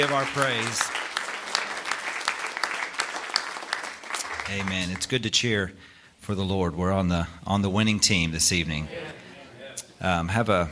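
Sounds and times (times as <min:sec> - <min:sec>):
speech: 0:00.0 - 0:01.0, 0:04.5 - 0:09.2, 0:10.0 - 0:10.7
audience applause: 0:00.0 - 0:05.1.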